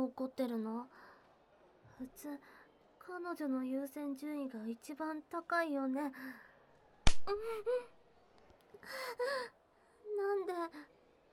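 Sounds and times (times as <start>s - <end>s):
speech: 0.0s - 1.0s, 2.0s - 6.5s, 7.2s - 8.0s, 8.8s - 11.0s
slap striking a person during a couple's argument: 7.1s - 7.4s.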